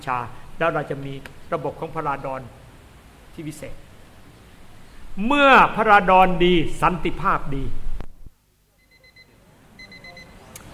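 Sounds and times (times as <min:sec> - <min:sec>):
speech: 0:00.0 - 0:02.6, 0:03.4 - 0:03.8, 0:05.2 - 0:07.8
clock alarm beeps for ten o'clock: 0:08.8 - 0:10.4.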